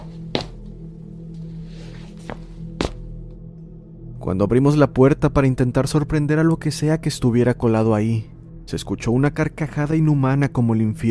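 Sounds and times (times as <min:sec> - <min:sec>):
footsteps on a roof: 0:00.0 - 0:00.8, 0:01.9 - 0:03.1
speech: 0:04.2 - 0:11.0.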